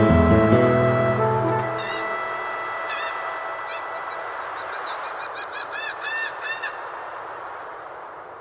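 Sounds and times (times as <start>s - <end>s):
acoustic remix: 0.0s - 4.4s.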